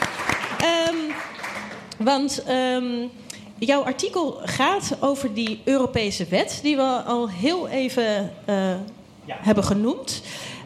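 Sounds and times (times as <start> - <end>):
studio audience applause: 0.0 - 1.9
speech: 2.0 - 10.6.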